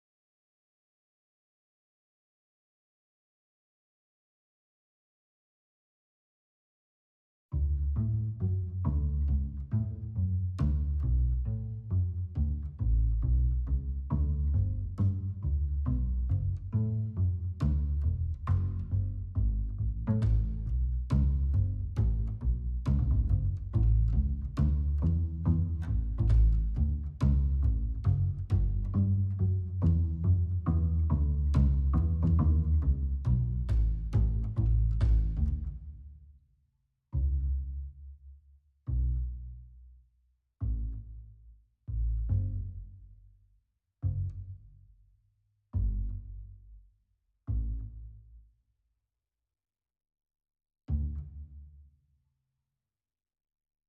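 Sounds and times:
clean bass: 7.5 - 36.1, 37.1 - 38.2, 38.9 - 40.0, 40.6 - 43.3, 44.0 - 44.9, 45.7 - 46.9, 47.5 - 48.4, 50.9 - 51.7.

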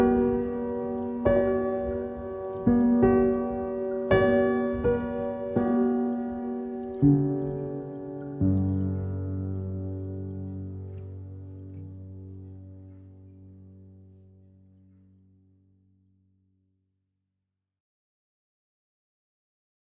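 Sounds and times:
pianos playing: 0.0 - 15.3.

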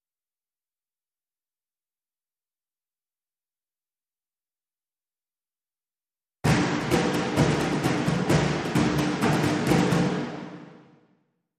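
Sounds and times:
dhol played with brushes, loop ending: 6.5 - 10.9.

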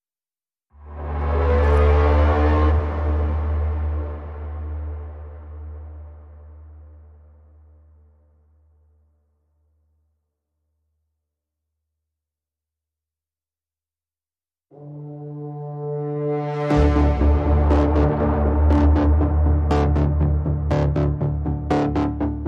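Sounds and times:
pulsing braam: 0.8 - 7.4, 14.8 - 22.3.

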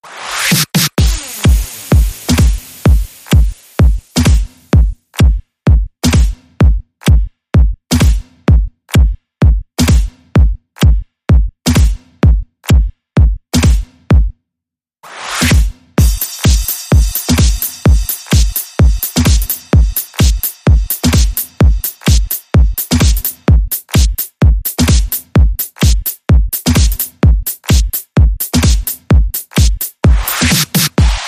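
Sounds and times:
music beat: 0.4 - 13.9, 15.1 - 31.2.

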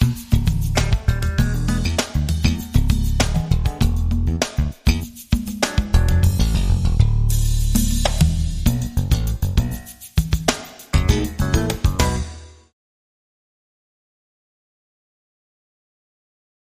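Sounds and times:
jazz music: 0.0 - 12.7.

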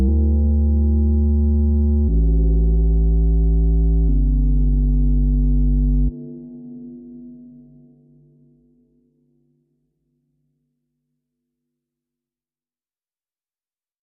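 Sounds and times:
bass underscore: 0.0 - 6.2.

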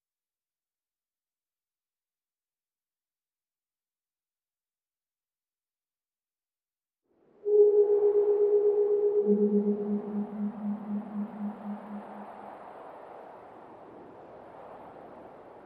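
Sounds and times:
noises: 7.5 - 12.9.

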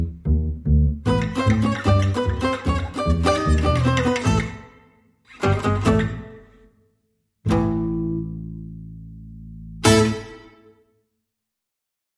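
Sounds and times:
bass guitar: 0.0 - 6.7, 7.4 - 10.5.

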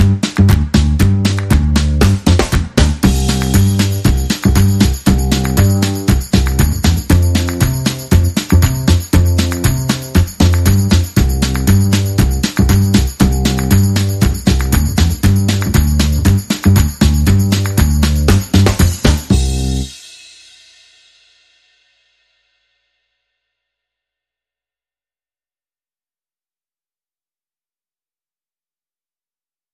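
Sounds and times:
rhythm and bass mix: 0.0 - 20.0.

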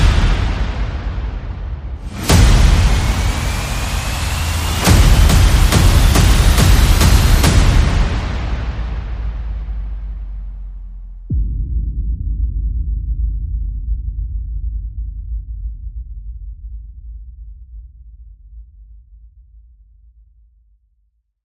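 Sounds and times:
sound effects: 0.0 - 10.6
percussion: 0.0 - 14.0.

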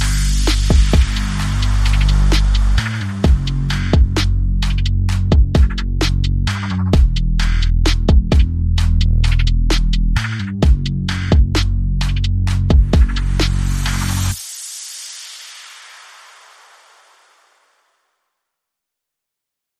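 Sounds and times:
bass: 0.0 - 14.4
drums: 0.0 - 17.2.

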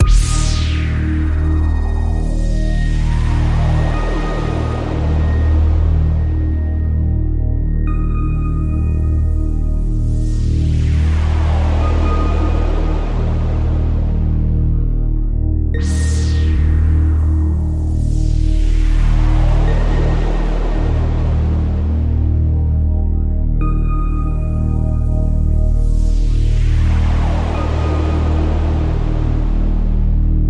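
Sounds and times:
synth pad: 0.0 - 30.4.

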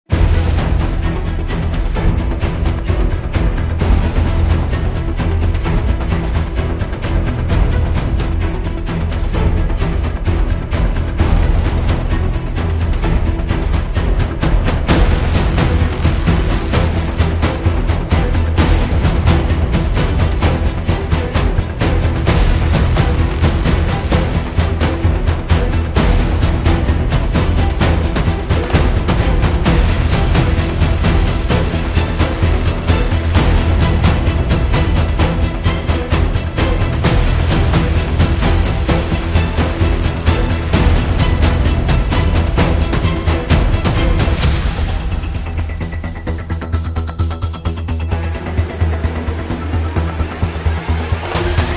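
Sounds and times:
brass instruments: 0.1 - 51.7.

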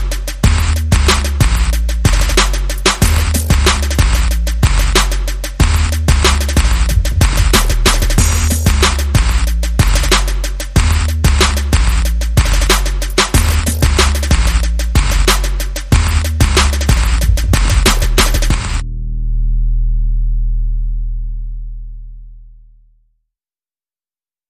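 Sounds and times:
percussion: 0.0 - 18.8
bass: 0.0 - 23.2.

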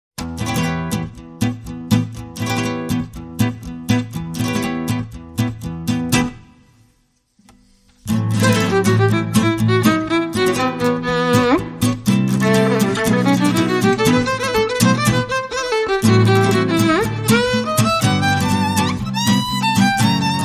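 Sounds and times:
guitars: 0.2 - 20.4
violin: 8.1 - 20.4.

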